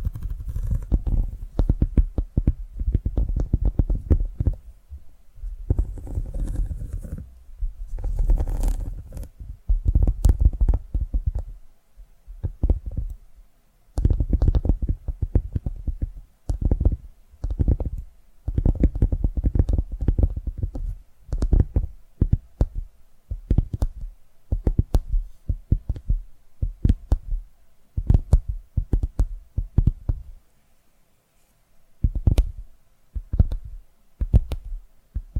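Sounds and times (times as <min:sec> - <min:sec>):
muffled tapping thumps: 0:00.0 - 0:11.6, 0:12.3 - 0:13.2, 0:14.0 - 0:27.4, 0:28.0 - 0:30.3, 0:32.0 - 0:35.3.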